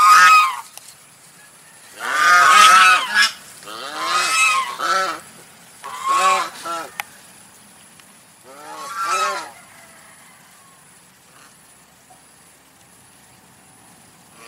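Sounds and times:
domestic goose honking: 0.0s - 0.6s, 2.0s - 7.0s, 8.5s - 9.6s.

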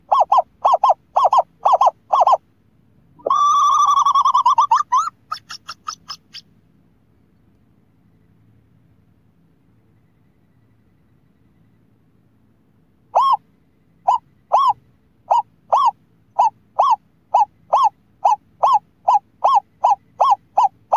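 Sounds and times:
scops owl hooting: 0.0s - 2.4s, 3.2s - 6.4s, 13.1s - 20.9s.

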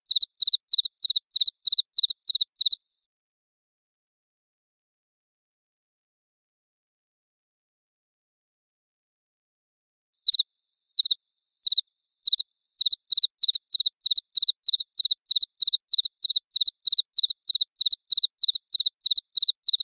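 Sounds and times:
cricket chirping: 0.1s - 2.9s, 10.2s - 19.8s.

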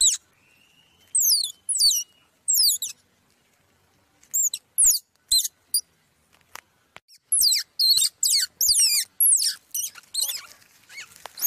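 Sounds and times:
squirrel pup squeaking: 0.0s - 0.3s, 1.0s - 3.0s, 4.2s - 5.9s, 7.1s - 11.4s.

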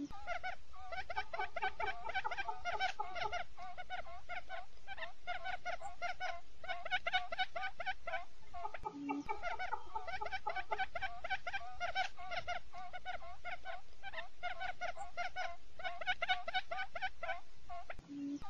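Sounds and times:
quail calling: 0.0s - 18.4s.

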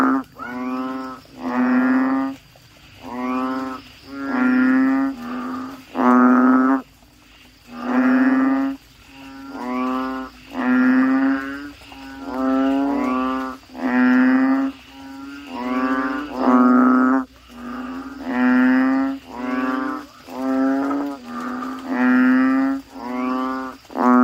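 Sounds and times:
Asian common toad croaking: 0.0s - 24.2s.

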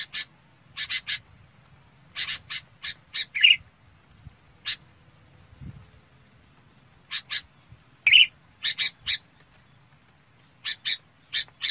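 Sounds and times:
red-whiskered bulbul chirping calls: 0.0s - 1.3s, 2.1s - 3.7s, 4.6s - 4.9s, 6.6s - 9.8s, 10.4s - 11.6s.

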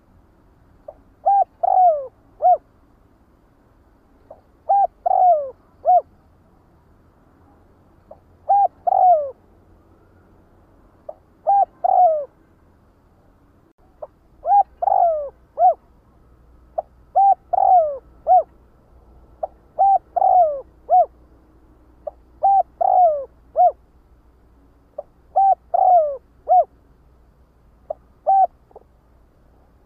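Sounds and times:
spotted dove cooing: 0.9s - 2.6s, 4.3s - 6.1s, 8.1s - 9.4s, 11.1s - 12.4s, 14.0s - 15.9s, 16.8s - 18.5s, 19.4s - 21.2s, 22.0s - 23.8s, 25.0s - 26.7s, 27.9s - 28.9s.

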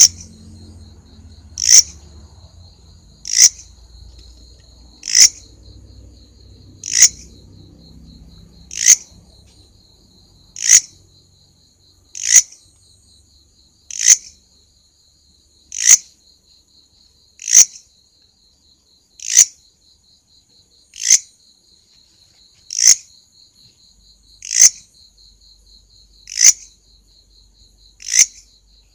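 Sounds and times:
grasshopper rasping: 0.0s - 0.4s, 1.3s - 9.6s, 10.4s - 11.0s, 12.1s - 12.7s, 13.9s - 14.4s, 15.7s - 16.1s, 17.4s - 17.9s, 19.2s - 19.6s, 20.9s - 21.3s, 22.2s - 23.1s, 24.4s - 24.9s, 26.2s - 26.7s, 28.0s - 28.5s.

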